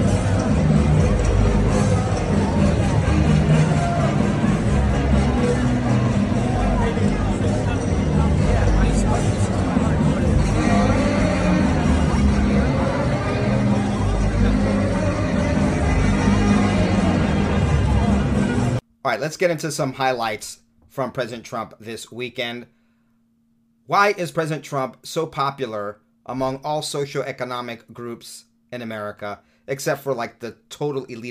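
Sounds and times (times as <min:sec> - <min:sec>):
crowd at the Trump rally in South Carolina: 0:00.0 - 0:18.8
speech: 0:19.1 - 0:22.8, 0:23.9 - 0:31.2.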